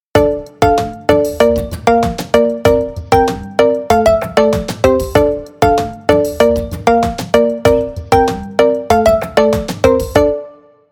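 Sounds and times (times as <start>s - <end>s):
vibrant ringtone: 0.2s - 10.8s.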